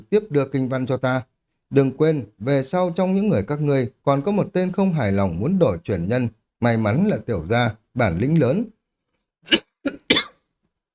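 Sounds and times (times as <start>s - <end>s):
speech: 0.1s - 8.8s, 9.4s - 10.0s
person coughing: 9.5s - 10.5s.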